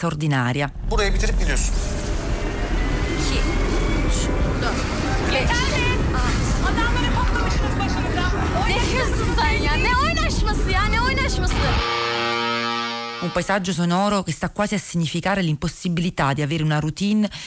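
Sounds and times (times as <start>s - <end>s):
speech: 0.0s - 2.0s, 3.2s - 6.8s, 7.8s - 12.0s, 13.2s - 17.4s
helicopters: 0.8s - 11.8s
police sirens: 2.0s - 13.2s.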